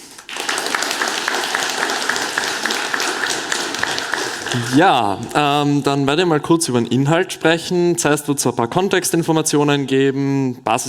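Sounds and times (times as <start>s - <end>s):
audience applause: 0.0s - 5.6s
speech: 4.5s - 10.8s.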